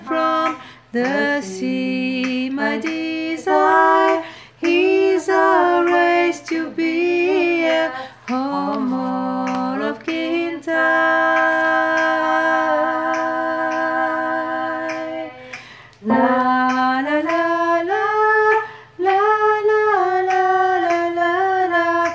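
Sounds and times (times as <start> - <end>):
person singing a la la la melody in verses and refrains: 0.0 - 22.1
alto: 16.0 - 16.9.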